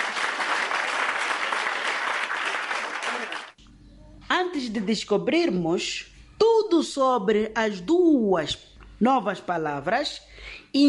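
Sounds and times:
applause: 0.0 - 3.6
speech: 4.6 - 6.1, 6.8 - 10.8.

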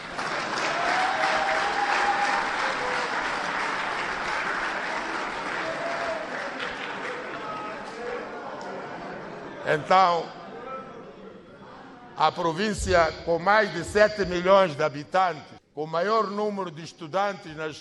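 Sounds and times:
audience clapping: 0.0 - 8.8
speech: 9.7 - 10.4, 12.2 - 17.7.

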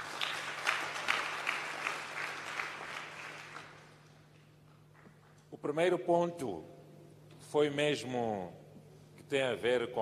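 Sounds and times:
applause: 0.0 - 5.4
speech: 5.6 - 6.8, 7.5 - 8.6, 9.3 - 10.0.

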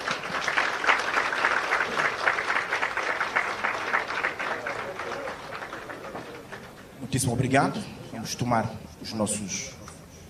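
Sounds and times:
audience applause: 0.0 - 6.9
speech: 7.1 - 9.8.

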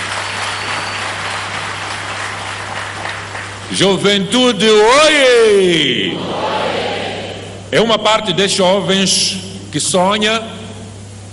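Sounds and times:
crowd applauding: 0.0 - 3.8
speech: 3.7 - 6.7, 7.7 - 10.6.

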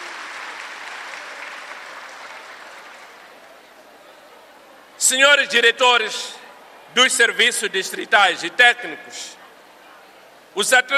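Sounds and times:
audience applause: 0.0 - 3.6
speech: 5.0 - 6.4, 7.0 - 9.4, 10.6 - 10.9.

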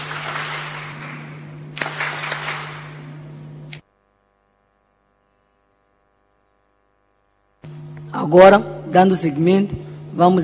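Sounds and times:
audience applause: 0.0 - 3.2
low electrical hum: 0.0 - 10.4
speech: 8.2 - 10.4.

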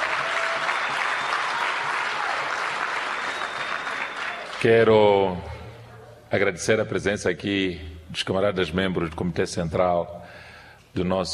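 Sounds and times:
crowd applauding: 0.0 - 5.0
speech: 4.6 - 5.5, 6.3 - 11.3.

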